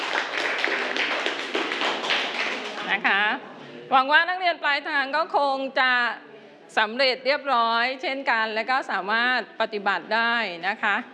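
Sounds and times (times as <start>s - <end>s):
students clapping in a classroom: 0.0s - 3.1s
speech: 3.0s - 11.1s.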